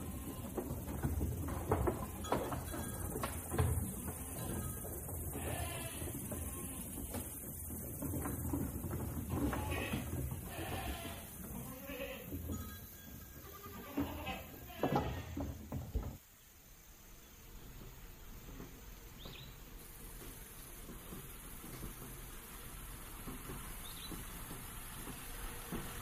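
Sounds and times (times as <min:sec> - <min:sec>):
farm animals calling and bleating: 0:00.0 - 0:00.8, 0:03.8 - 0:07.4, 0:09.3 - 0:15.5
faint even hiss with a thin high whine: 0:00.0 - 0:26.0.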